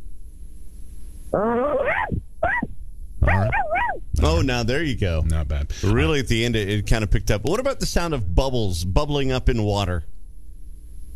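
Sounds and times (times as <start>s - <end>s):
speech: 1.3s - 1.5s, 4.2s - 10.1s
human voice imitating a dog barking: 1.4s - 4.5s.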